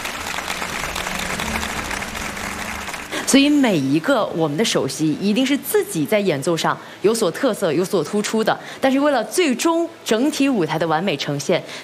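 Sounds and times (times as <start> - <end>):
audience applause: 0.0 - 3.9
speech: 3.3 - 11.8.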